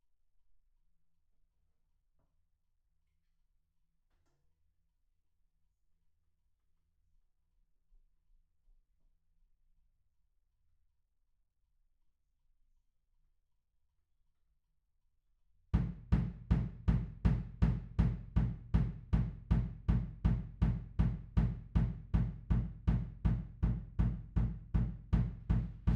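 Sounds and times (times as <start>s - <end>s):
music: 15.8s - 25.9s.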